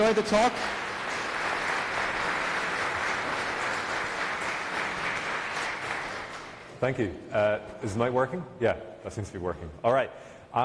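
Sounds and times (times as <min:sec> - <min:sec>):
speech: 0:00.0 - 0:00.8, 0:06.8 - 0:10.6
audience applause: 0:00.0 - 0:06.7.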